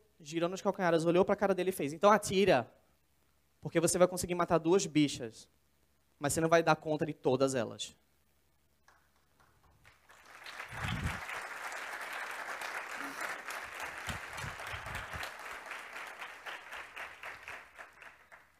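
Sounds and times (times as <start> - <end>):
speech: 0.2 - 2.8, 3.6 - 5.6, 6.2 - 8.0
audience applause: 9.3 - 18.5.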